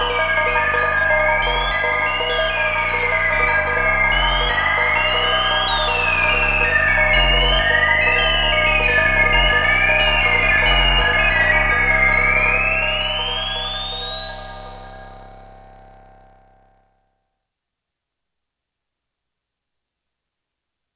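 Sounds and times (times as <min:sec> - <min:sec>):
Korg MS-20 synthesizer oscillator sync: 0:00.0 - 0:16.2.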